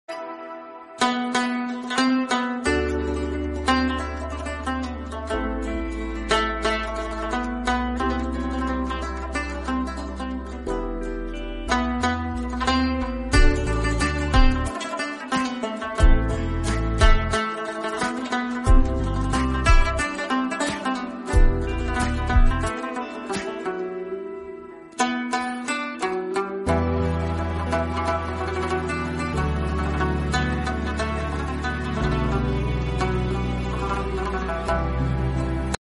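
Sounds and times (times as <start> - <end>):
rabab music: 0.1 - 35.8.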